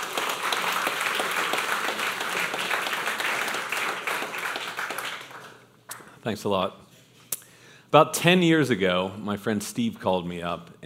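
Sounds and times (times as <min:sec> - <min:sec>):
audience round of applause: 0:00.0 - 0:05.7
speech: 0:06.2 - 0:06.8, 0:07.9 - 0:10.8.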